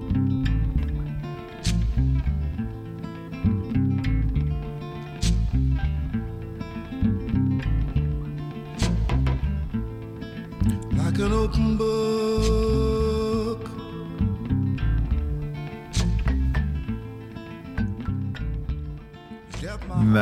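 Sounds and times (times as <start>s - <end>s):
folk-blues song with heavy bass and rhythmic groove: 0.0s - 20.2s
speech: 11.5s - 12.0s.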